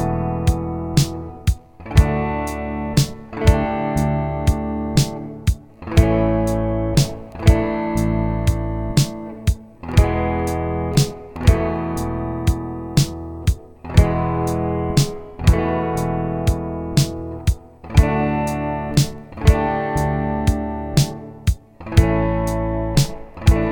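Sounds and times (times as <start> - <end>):
E D A E sus4 chord sequence: 0.0 - 23.7.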